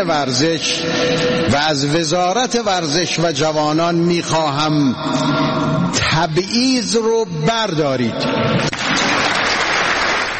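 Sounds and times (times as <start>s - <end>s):
speech: 0.0s - 9.1s
applause: 8.7s - 10.3s.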